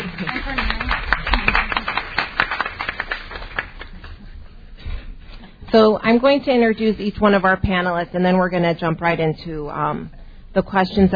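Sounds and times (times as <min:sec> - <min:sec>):
audience applause: 0:00.0 - 0:04.2
speech: 0:05.7 - 0:11.1.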